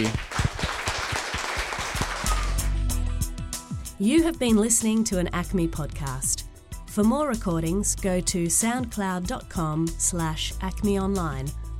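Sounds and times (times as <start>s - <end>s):
speech: 0.0s - 0.3s, 4.0s - 6.4s, 7.0s - 11.7s
audience applause: 0.0s - 2.8s.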